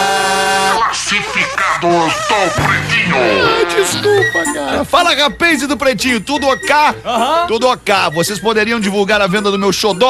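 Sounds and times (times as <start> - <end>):
human voice imitating duck quacks: 0.6 - 4.4
speech: 1.1 - 10.0.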